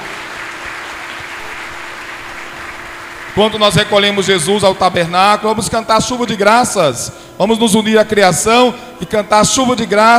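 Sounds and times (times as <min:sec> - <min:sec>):
church congregation applauding: 0:00.0 - 0:05.1
speech: 0:03.4 - 0:10.1.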